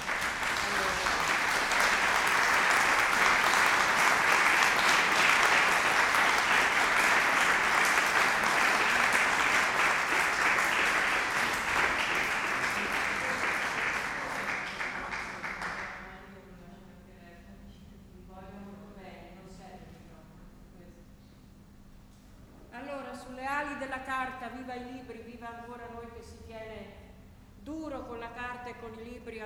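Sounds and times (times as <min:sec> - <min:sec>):
audience applause at a book presentation: 0:00.0 - 0:16.1.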